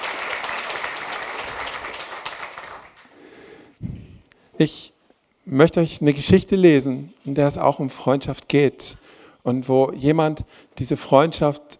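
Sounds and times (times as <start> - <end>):
audience applause: 0.0 - 3.1
speech: 4.6 - 4.9, 5.5 - 11.7.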